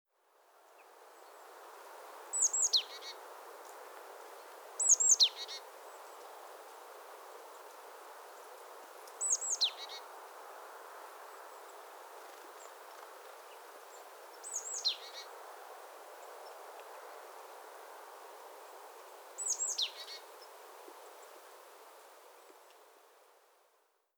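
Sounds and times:
faint background hiss: 0.1 - 24.1
great tit calls: 4.8 - 5.6, 9.2 - 10.0, 14.4 - 15.3, 19.4 - 20.2.

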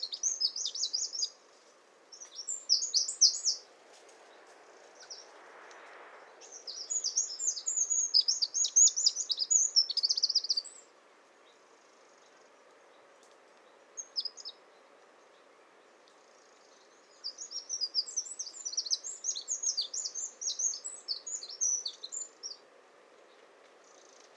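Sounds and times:
Eurasian wren song of rapid high trills: 0.0 - 1.4, 2.1 - 3.6, 6.4 - 13.0, 13.6 - 22.6
quiet hiss: 0.0 - 24.3.

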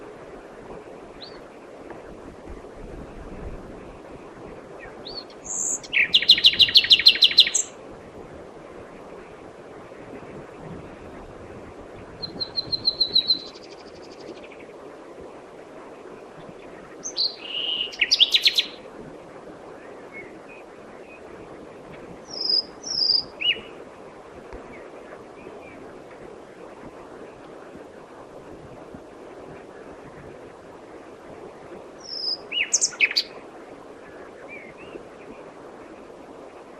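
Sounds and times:
common nightingale song: 4.8 - 7.8, 12.2 - 14.7, 17.0 - 18.8, 22.3 - 23.7, 32.0 - 33.3.

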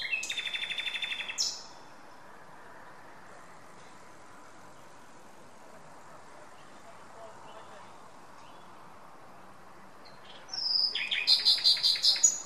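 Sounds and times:
Common nightingale song: 0.0 - 2.2, 6.0 - 12.4.

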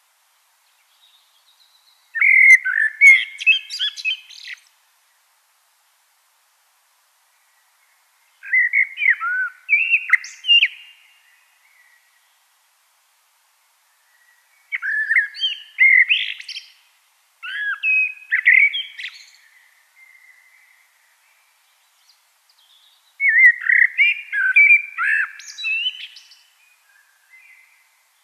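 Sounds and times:
common blackbird singing: 0.9 - 4.7, 8.4 - 12.1, 14.1 - 16.8, 17.4 - 27.9.

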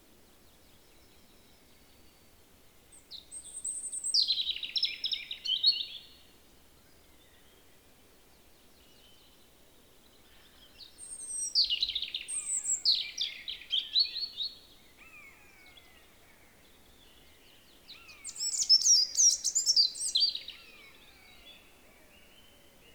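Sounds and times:
European robin singing: 2.9 - 6.2, 10.2 - 22.9.

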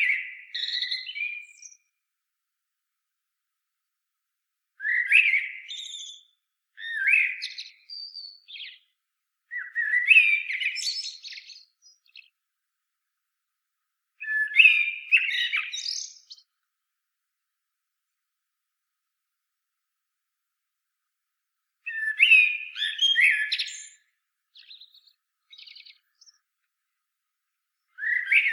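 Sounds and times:
Common blackbird singing: 0.0 - 1.9, 4.8 - 8.9, 9.5 - 12.4, 14.2 - 16.5, 21.9 - 26.4, 27.8 - 28.5.

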